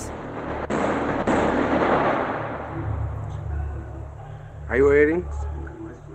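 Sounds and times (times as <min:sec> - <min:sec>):
bomb explosion amid fighting near refugee detention centres: 0:00.0 - 0:03.7
speech: 0:04.7 - 0:05.5.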